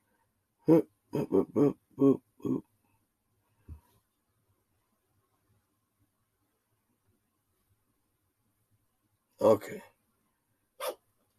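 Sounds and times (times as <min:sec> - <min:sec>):
speech: 0:00.7 - 0:02.7, 0:09.4 - 0:09.9
dog sneezing: 0:10.8 - 0:11.0.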